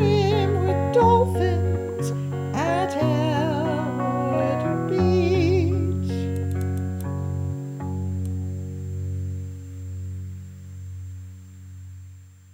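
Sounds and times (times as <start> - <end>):
voices: 0.0 - 6.3
guitar: 0.0 - 12.5.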